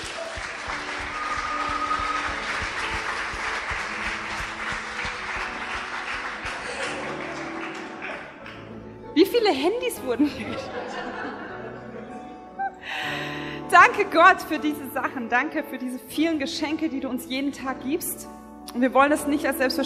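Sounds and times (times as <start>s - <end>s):
audience applause: 0.0s - 8.7s
laughter: 6.4s - 8.5s, 10.2s - 12.8s
speech: 9.3s - 11.4s, 13.7s - 19.8s.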